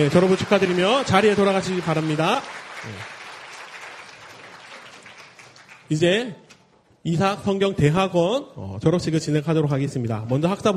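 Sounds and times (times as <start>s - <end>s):
speech: 0.0s - 3.2s, 5.9s - 6.4s, 7.0s - 10.7s
audience clapping: 0.0s - 6.3s.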